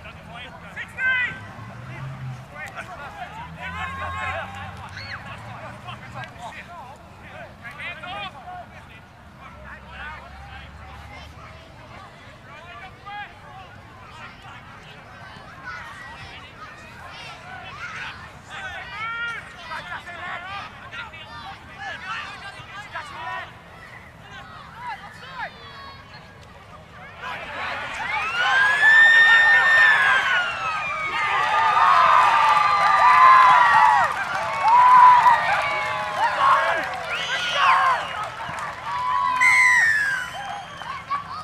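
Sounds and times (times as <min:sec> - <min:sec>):
crowd and player voices at a rugby league match: 0:00.0 - 0:41.4
louder shouting and calls: 0:27.2 - 0:41.4.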